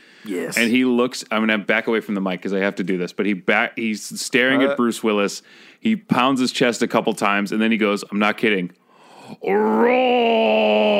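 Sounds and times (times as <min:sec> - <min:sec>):
breath: 0:00.0 - 0:00.3, 0:05.4 - 0:05.8, 0:08.8 - 0:09.4
speech: 0:00.2 - 0:10.9
man imitating a roar: 0:09.4 - 0:10.9.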